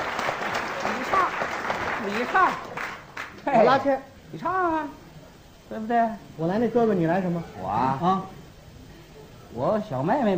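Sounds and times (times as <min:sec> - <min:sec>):
audience clapping welcoming performers: 0:00.0 - 0:03.6
speech: 0:02.0 - 0:02.7, 0:03.4 - 0:05.0, 0:05.7 - 0:08.4, 0:09.5 - 0:10.3.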